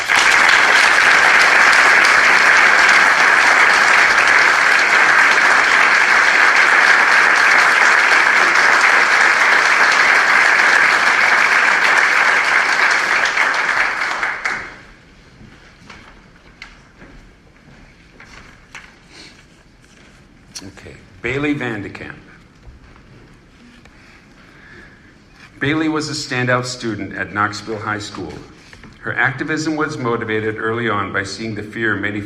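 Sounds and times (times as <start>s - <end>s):
audience applause: 0.0s - 15.1s
speech: 26.0s - 32.2s.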